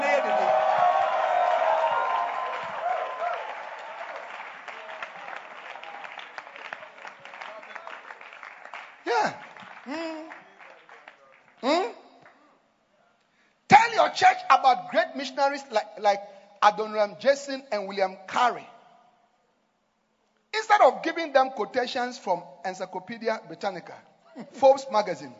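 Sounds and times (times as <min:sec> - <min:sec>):
audience shouting: 0:00.0 - 0:06.0
audience clapping: 0:00.0 - 0:12.5
speech: 0:09.2 - 0:10.1, 0:14.2 - 0:18.7, 0:20.8 - 0:25.3.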